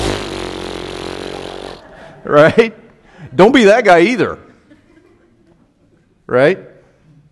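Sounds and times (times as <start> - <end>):
voice imitating a chainsaw: 0.0 - 1.9
speech: 2.2 - 4.4, 6.3 - 6.7
laughter: 4.4 - 5.8.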